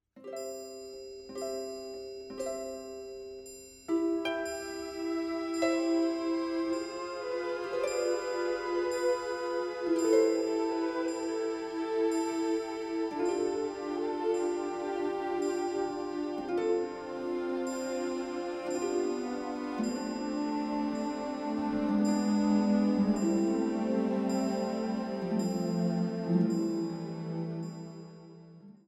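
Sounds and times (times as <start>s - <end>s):
piano: 4.3s - 28.4s.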